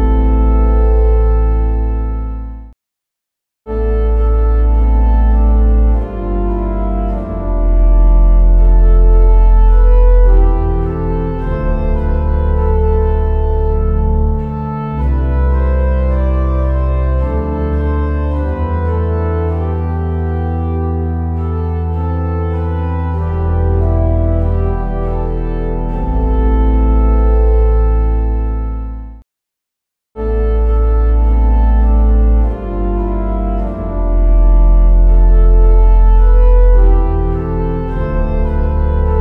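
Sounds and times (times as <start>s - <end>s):
organ: 0.0s - 2.7s, 3.7s - 29.2s, 30.2s - 39.1s.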